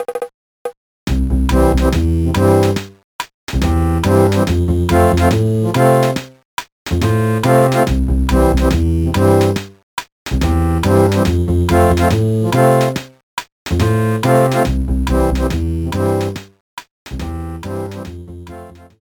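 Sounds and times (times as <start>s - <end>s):
video game world map music: 1.1s - 3.0s, 3.6s - 6.3s, 6.9s - 9.8s, 10.4s - 13.1s, 13.7s - 16.5s, 17.2s - 19.0s.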